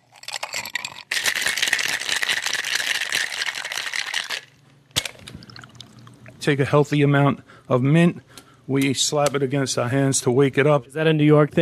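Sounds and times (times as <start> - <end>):
ice rattling in a cocktail: 0.0 - 4.5
speech: 6.4 - 11.6.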